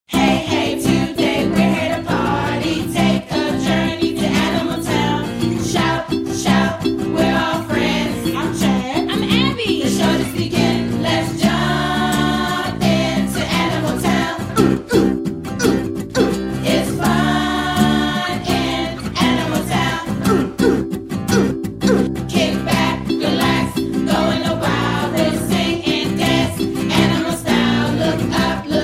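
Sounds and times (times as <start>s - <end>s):
hello song: 0.1s - 28.8s.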